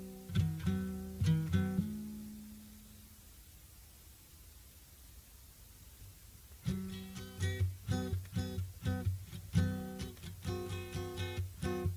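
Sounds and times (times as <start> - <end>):
plucked guitar jam: 0.0 - 2.7, 6.6 - 11.9.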